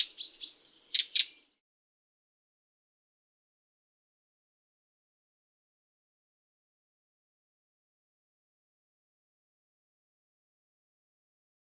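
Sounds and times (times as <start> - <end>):
redwing call: 0.0 - 1.4.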